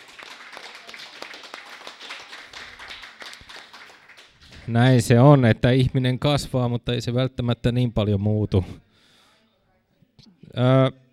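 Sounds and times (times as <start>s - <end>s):
applause: 0.0s - 5.0s
speech: 4.7s - 8.9s, 10.4s - 11.0s.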